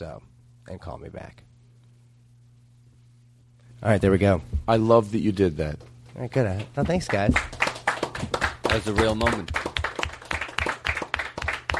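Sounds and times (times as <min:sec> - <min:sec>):
speech: 0:00.0 - 0:01.5, 0:03.8 - 0:07.6, 0:08.7 - 0:09.6
room full of people applauding: 0:06.8 - 0:11.7.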